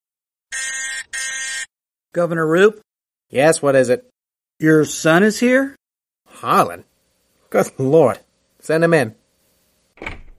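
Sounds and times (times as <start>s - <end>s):
office intercom buzzer: 0.5s - 1.7s
speech: 1.0s - 5.8s, 6.4s - 6.9s, 7.5s - 9.2s.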